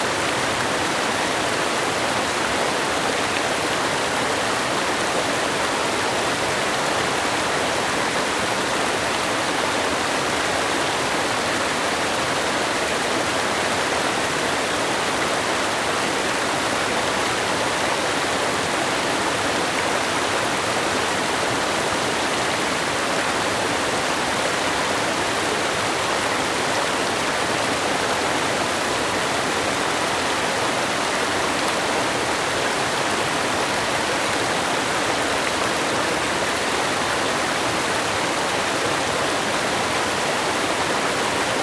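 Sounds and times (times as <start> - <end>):
mountain stream flowing: 0.0 - 41.6.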